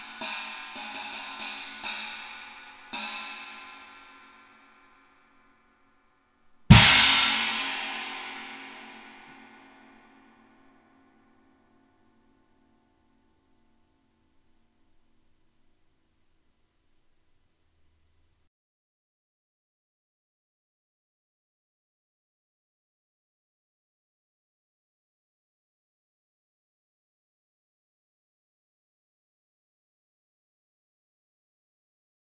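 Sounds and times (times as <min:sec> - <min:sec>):
20-inch china cymbal: 0:00.0 - 0:05.4, 0:06.7 - 0:10.4.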